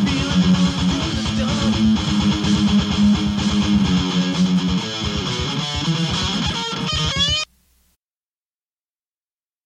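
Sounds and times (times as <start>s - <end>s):
riff tapes: 0.0s - 7.6s.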